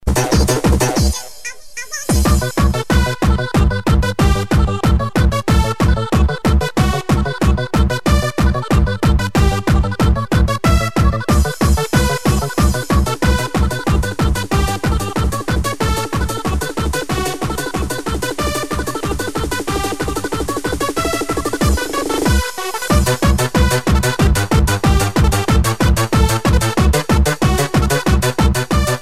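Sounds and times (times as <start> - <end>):
chav dance song: 0.0 - 29.0.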